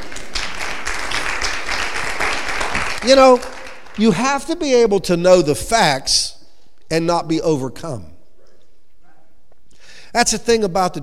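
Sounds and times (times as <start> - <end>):
audience clapping hands: 0.0 - 4.6
speech: 3.0 - 6.3, 6.9 - 8.1, 10.1 - 11.0.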